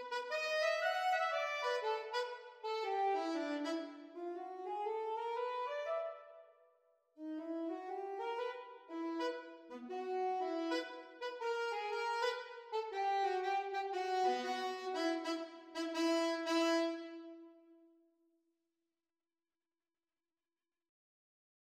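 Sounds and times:
alto saxophone duet at exam speed: 0.0 - 6.2, 7.2 - 17.7.

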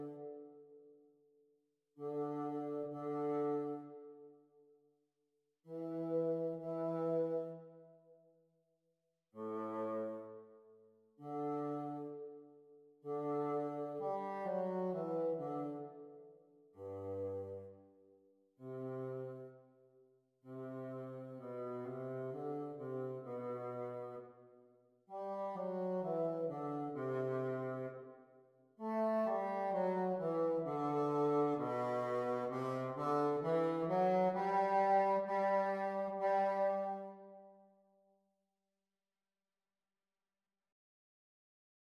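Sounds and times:
bassoon duet: 0.0 - 0.4, 2.0 - 4.1, 5.7 - 7.7, 9.4 - 10.4, 11.2 - 12.3, 13.1 - 16.0, 16.8 - 17.7, 18.6 - 19.5, 20.5 - 24.3, 25.1 - 28.0, 28.8 - 37.4.

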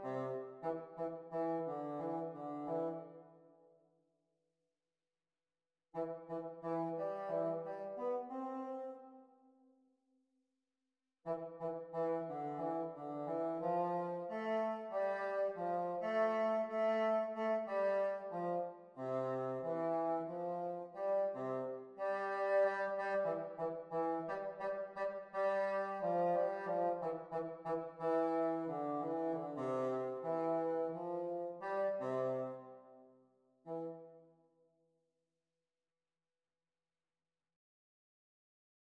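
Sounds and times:
bassoon duet practice: 0.0 - 3.2, 6.0 - 9.1, 11.3 - 32.9, 33.6 - 34.2.

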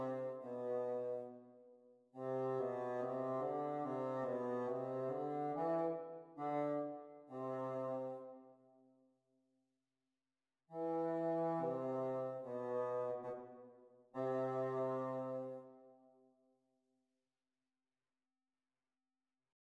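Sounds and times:
bassoon duet practising speed: 0.0 - 1.3, 2.2 - 8.4, 10.8 - 13.6, 14.2 - 15.8.

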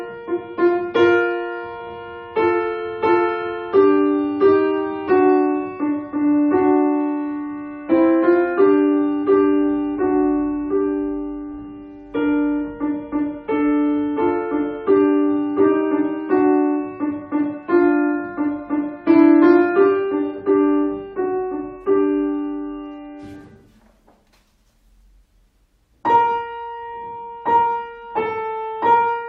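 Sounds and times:
piano duet playing a pavane at exam speed: 0.0 - 29.2.

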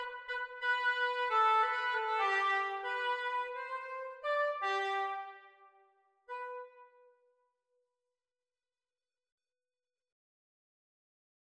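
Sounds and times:
oboe duet practice: 0.0 - 5.6, 6.3 - 7.1.

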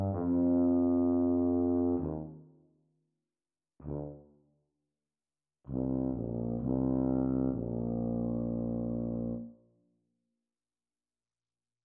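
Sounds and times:
B-flat tuba duet at practice speed: 0.0 - 2.4, 3.8 - 4.3, 5.7 - 9.6.

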